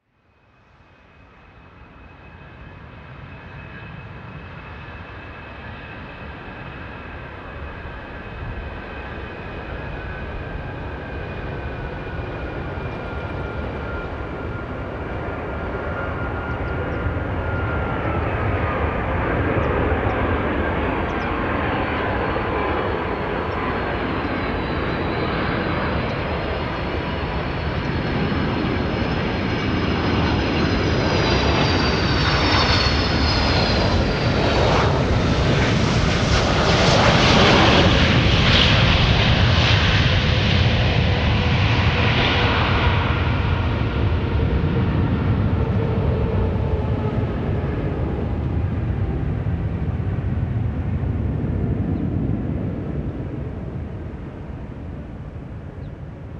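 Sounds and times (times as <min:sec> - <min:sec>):
airliner landing: 0:00.4 - 0:56.3.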